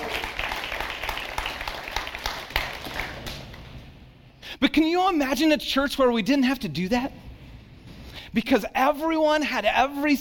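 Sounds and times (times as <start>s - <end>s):
audience applause: 0.0s - 3.6s
speech: 4.7s - 7.2s, 8.4s - 10.1s.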